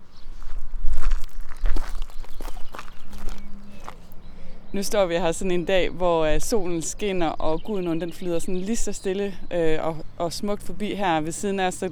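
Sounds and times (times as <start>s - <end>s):
footsteps walking along a riverbank: 0.0s - 5.5s
speech: 4.7s - 11.9s.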